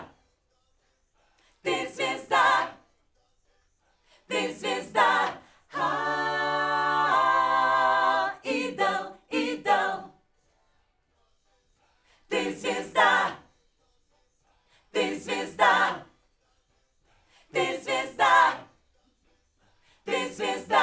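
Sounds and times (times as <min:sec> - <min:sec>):
backing vocals on AKG microphone: 0:01.7 - 0:02.7, 0:04.3 - 0:10.1, 0:12.3 - 0:13.4, 0:14.9 - 0:16.1, 0:17.5 - 0:18.6, 0:20.1 - 0:20.8.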